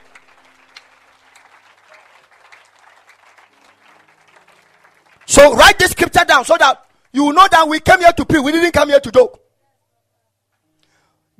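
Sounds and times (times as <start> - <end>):
hand clapping: 0.0 - 7.2
speech: 5.3 - 9.4.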